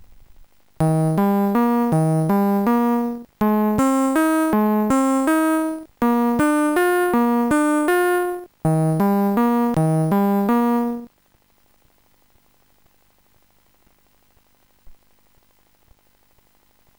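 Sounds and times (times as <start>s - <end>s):
bass: 0.8s - 11.0s.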